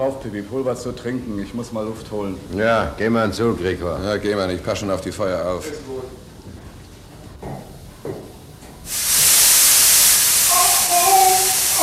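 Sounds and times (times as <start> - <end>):
speech: 0.0 - 6.2
steam hissing from a burst steam pipe: 8.8 - 11.8.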